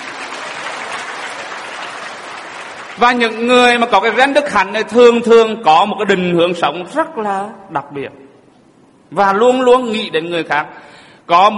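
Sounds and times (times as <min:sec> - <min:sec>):
audience at a talk applauding: 0:00.0 - 0:04.0
speech: 0:03.0 - 0:08.2, 0:09.1 - 0:11.5.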